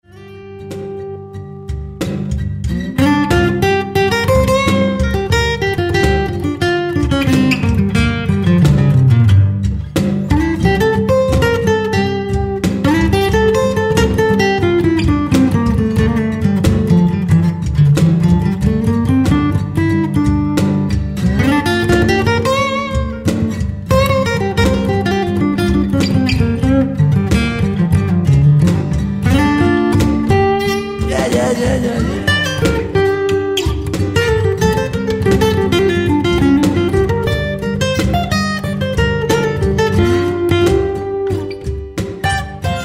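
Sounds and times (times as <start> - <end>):
guitar solo: 0.1 - 42.8.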